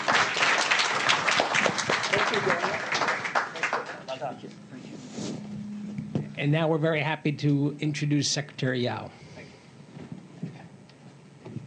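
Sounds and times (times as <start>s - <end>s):
crowd applauding: 0.0s - 4.4s
low hum: 4.2s - 11.6s
speech: 6.4s - 9.2s.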